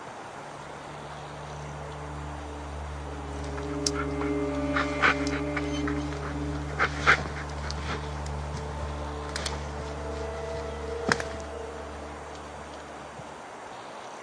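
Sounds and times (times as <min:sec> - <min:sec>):
steady low droning hum: 0:00.1 - 0:13.9
worn-out tracking dog whimpering and panting: 0:03.9 - 0:08.1.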